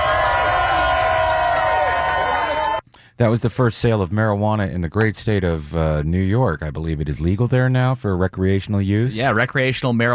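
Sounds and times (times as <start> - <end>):
crowd applause: 0.0 - 2.8
speech: 3.2 - 10.1.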